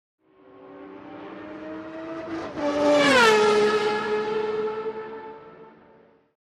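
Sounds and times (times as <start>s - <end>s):
sports car passing by fast: 0.2s - 6.3s.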